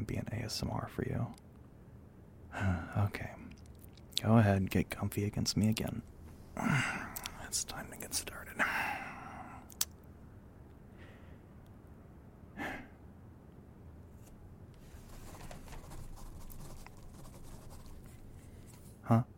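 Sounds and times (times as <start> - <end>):
speech: 0.1 - 1.4, 2.5 - 3.6, 4.2 - 8.9, 19.1 - 19.3
pen scratching on paper: 15.2 - 18.2.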